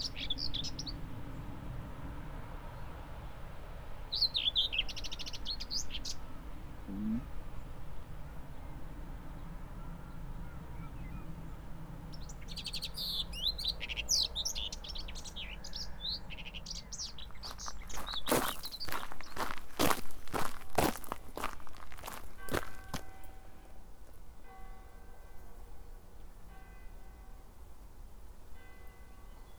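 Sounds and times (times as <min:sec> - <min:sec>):
birds chirping: 0:00.0 - 0:01.6, 0:04.0 - 0:23.3
wind: 0:00.0 - 0:29.5
sharp crunching steps: 0:17.2 - 0:23.3
footsteps on a walk along the East Devon Way: 0:17.3 - 0:23.3.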